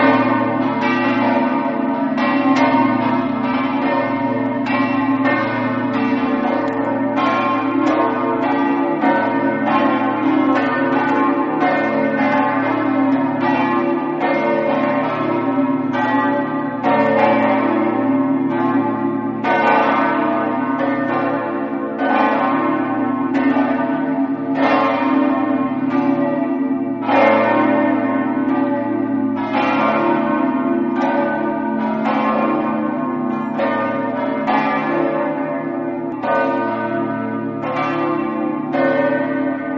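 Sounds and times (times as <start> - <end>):
bells ringing in Trieste: 0.0 - 39.7.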